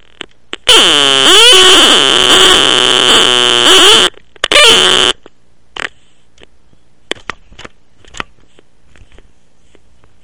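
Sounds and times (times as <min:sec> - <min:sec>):
circuit-bent electronic sounds: 0:00.6 - 0:05.2.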